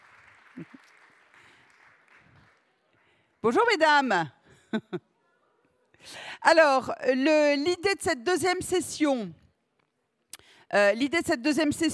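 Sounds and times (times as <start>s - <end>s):
audience applause: 0.0s - 2.7s
speech: 3.4s - 5.1s, 6.0s - 9.4s, 10.7s - 11.9s.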